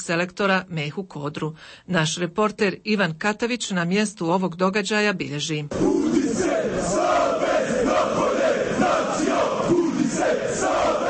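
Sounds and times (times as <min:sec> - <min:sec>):
speech: 0:00.1 - 0:07.1
large crowd of football supporters chanting and shouting in protest: 0:05.7 - 0:11.0.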